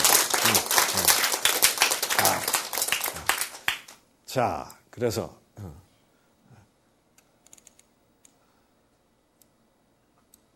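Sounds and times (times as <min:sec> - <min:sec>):
audience applause: 0:00.0 - 0:04.0
speech: 0:04.4 - 0:05.8.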